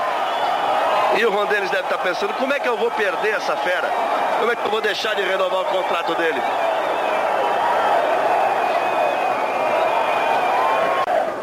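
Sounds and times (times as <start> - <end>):
stadium crowd cheering: 0.0 - 11.4
speech: 1.2 - 6.8.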